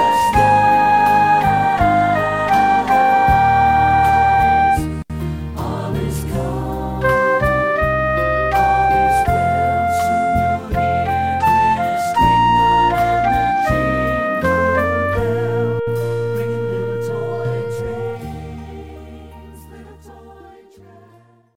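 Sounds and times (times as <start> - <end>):
person singing: 0.0 - 4.9, 5.6 - 21.4
flute part with vocals: 0.0 - 5.0, 7.0 - 19.6.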